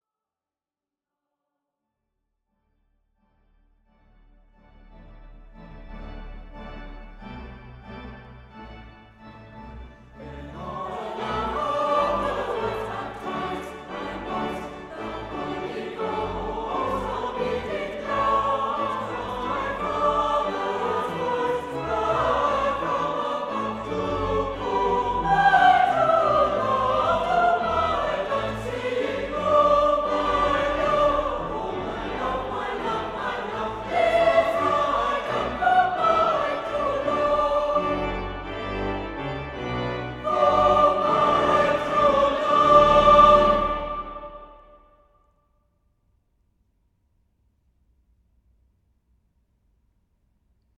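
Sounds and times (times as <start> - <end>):
church choir singing: 5.6 - 45.1.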